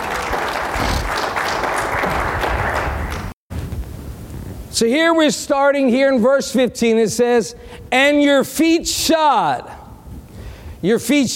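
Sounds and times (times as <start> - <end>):
room full of people applauding: 0.0 - 3.4
speech: 4.8 - 9.8, 10.8 - 11.3.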